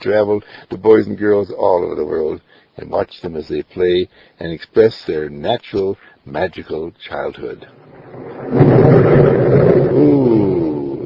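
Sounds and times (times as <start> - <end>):
speech: 0.0 - 10.7
rolling thunder: 7.7 - 11.0.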